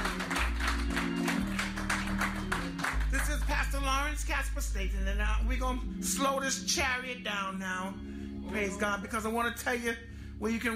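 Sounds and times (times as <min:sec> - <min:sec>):
church congregation clapping rhythmically in praise: 0:00.0 - 0:04.0
music with a deep bass line: 0:00.0 - 0:10.7
speech: 0:04.1 - 0:10.7.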